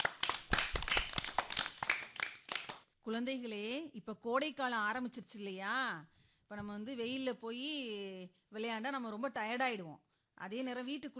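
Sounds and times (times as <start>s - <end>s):
small group clapping for a child's talk on greenery and tradition: 0.0s - 2.9s
speech: 3.1s - 11.1s.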